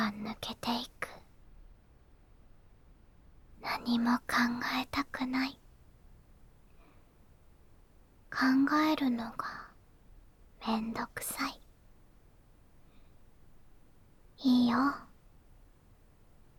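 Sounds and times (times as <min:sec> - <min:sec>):
ASMR whispering: 0:00.0 - 0:01.3, 0:03.6 - 0:05.6, 0:08.3 - 0:09.8, 0:10.6 - 0:11.7, 0:14.4 - 0:15.2.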